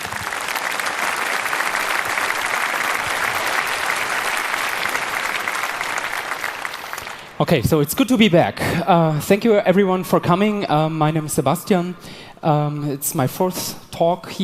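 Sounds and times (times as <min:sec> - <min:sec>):
audience applause: 0:00.0 - 0:07.4
speech: 0:07.4 - 0:14.4.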